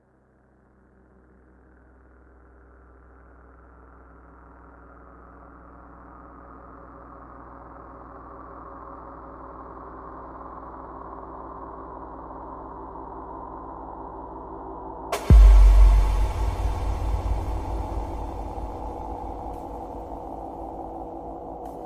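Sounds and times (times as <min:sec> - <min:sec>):
trill: 0:15.2 - 0:21.8.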